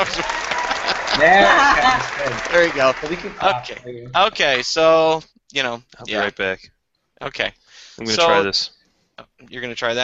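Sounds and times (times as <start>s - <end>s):
hand claps: 0.0s - 3.8s
speech: 0.0s - 10.0s
laughter: 0.2s - 2.4s.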